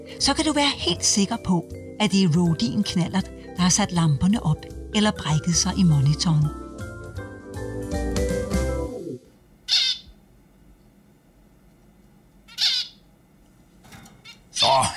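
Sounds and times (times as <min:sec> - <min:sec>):
speech: 0:00.0 - 0:06.6
low tonal music-like sound: 0:00.0 - 0:09.2
bird squawking: 0:09.6 - 0:10.2, 0:12.4 - 0:13.1, 0:14.2 - 0:14.9.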